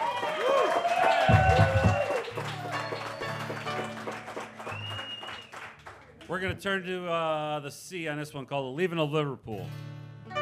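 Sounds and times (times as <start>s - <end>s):
audience applause: 0.0s - 6.5s
speech: 6.3s - 10.0s.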